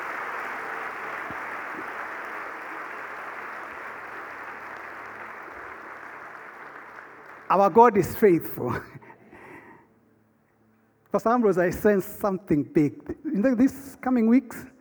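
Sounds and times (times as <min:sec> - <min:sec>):
crowd applauding: 0:00.0 - 0:08.4
speech: 0:07.5 - 0:09.0, 0:11.1 - 0:14.7.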